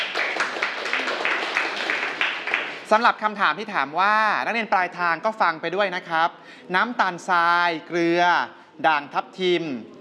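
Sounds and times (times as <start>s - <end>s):
students clapping hands: 0.0s - 3.0s
speech: 2.9s - 9.9s.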